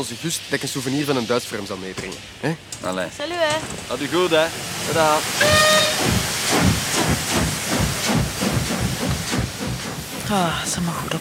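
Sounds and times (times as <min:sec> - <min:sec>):
speech: 0:00.0 - 0:06.2, 0:10.3 - 0:11.1
steam train pulling away chuffing: 0:00.0 - 0:11.1
brief high steam train whistle: 0:05.4 - 0:06.7.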